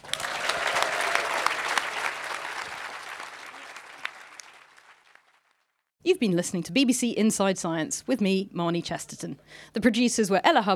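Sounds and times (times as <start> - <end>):
audience applause: 0.0 - 5.6
speech: 6.0 - 10.7.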